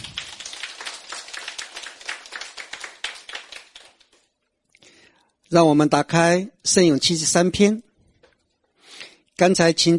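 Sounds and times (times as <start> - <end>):
crowd applauding: 0.0 - 4.3
speech: 5.5 - 7.9, 9.4 - 9.9.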